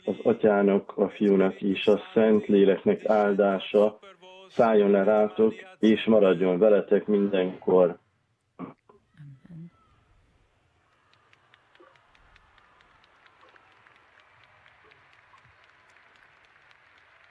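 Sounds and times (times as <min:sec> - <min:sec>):
speech: 0:00.3 - 0:08.0
pilgrims applauding in a square: 0:10.4 - 0:17.2.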